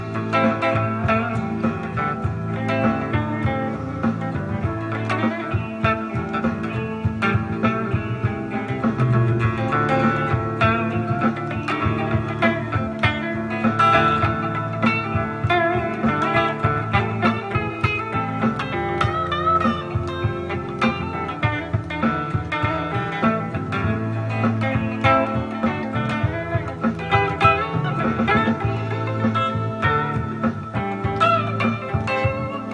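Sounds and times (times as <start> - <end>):
blues ringtone: 0.0 - 32.7.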